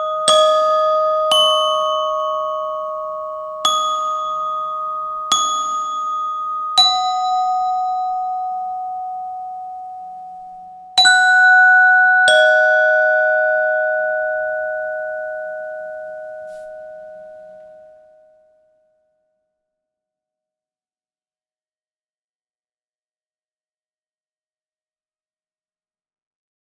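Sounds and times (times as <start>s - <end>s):
glockenspiel: 0.0s - 18.8s.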